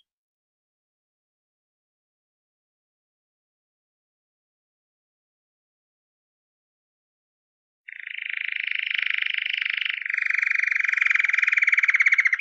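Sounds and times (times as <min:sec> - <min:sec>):
canary singing: 0:07.9 - 0:12.3.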